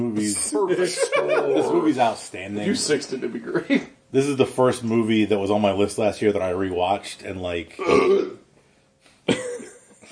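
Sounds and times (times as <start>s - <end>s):
speech: 0.0s - 8.4s
laughter: 0.5s - 2.1s
loud burp: 7.8s - 8.4s.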